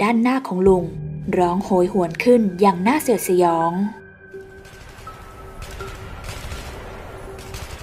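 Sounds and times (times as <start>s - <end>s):
speech: 0.0s - 4.0s
burst of gunfire: 4.4s - 7.8s.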